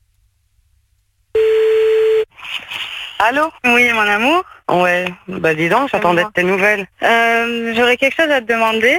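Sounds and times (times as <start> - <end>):
telephone ringback tone of an outgoing call: 1.4 - 2.3
speech: 3.2 - 8.9.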